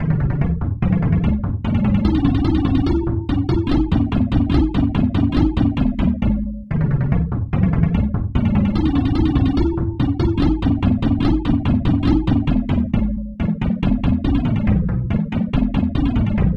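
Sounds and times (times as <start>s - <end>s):
taiko drum: 0.0s - 6.6s, 7.2s - 16.4s.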